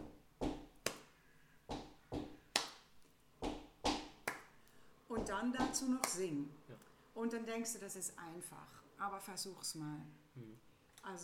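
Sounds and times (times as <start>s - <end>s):
foot stomps: 0.0s - 0.9s, 1.7s - 2.5s, 3.4s - 4.3s, 5.2s - 6.0s
hand claps: 0.8s - 1.1s, 1.7s - 2.8s, 3.4s - 4.6s, 5.2s - 6.2s
speech: 5.4s - 11.2s.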